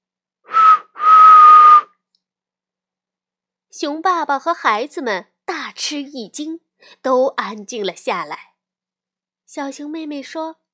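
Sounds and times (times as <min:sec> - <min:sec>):
loud two-finger whistle: 0:00.5 - 0:02.0
speech: 0:03.8 - 0:08.5, 0:09.5 - 0:10.6.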